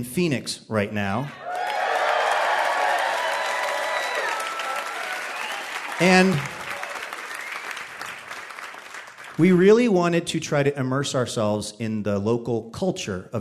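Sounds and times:
speech: 0.0s - 1.5s, 6.0s - 6.6s, 9.4s - 13.3s
enthusiastic crowd cheering and applauding: 1.2s - 9.6s.

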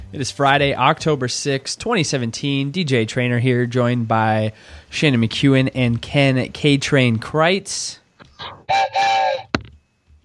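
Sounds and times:
speech: 0.1s - 9.3s
deep whistle: 8.4s - 9.6s.

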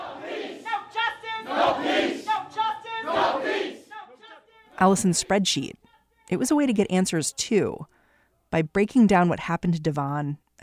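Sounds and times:
cheering and yelling: 0.0s - 4.7s
crowd chanting: 0.0s - 6.3s
speech: 4.8s - 10.6s.

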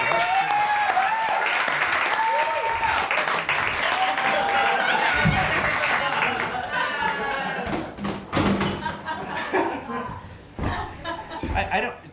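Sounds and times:
audience applause: 0.0s - 7.7s
cheers: 0.0s - 7.7s
chuckles and scattered laughter: 4.7s - 7.7s, 8.6s - 11.6s.

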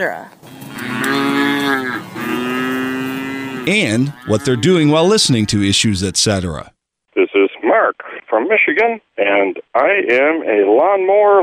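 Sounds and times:
speech: 0.0s - 1.2s, 3.6s - 6.8s, 7.8s - 11.4s
dairy cattle mooing: 0.5s - 5.5s.

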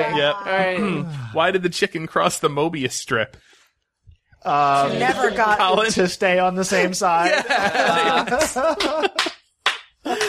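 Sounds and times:
speech: 0.0s - 3.6s, 4.4s - 9.3s
laughter: 6.8s - 9.3s, 10.1s - 10.2s
slow hand clapping: 8.3s - 10.2s.

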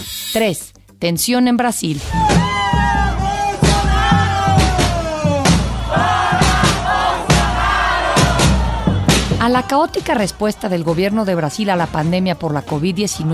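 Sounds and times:
speech: 0.3s - 2.3s, 9.4s - 13.3s
street protest crowd shouting: 2.1s - 11.7s.

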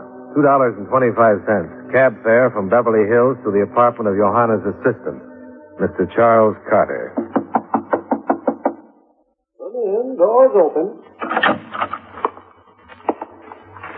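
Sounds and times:
speech: 0.4s - 7.2s, 10.5s - 11.6s
knocking on door: 7.1s - 8.9s
door creaking open: 11.1s - 13.9s.

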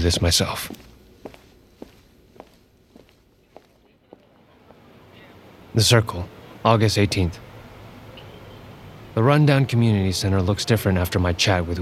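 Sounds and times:
speech: 0.0s - 0.9s, 5.8s - 7.5s, 9.2s - 11.8s
footsteps walking away: 0.0s - 4.3s
low hiss: 0.0s - 11.8s.

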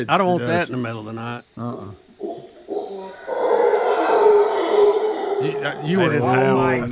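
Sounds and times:
speech: 0.0s - 2.1s, 5.4s - 6.8s
howler monkey howling: 2.2s - 6.8s.

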